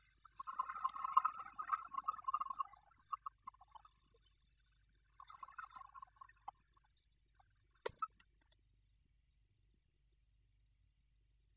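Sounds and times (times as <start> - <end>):
swimming underwater: 0.0 - 8.4.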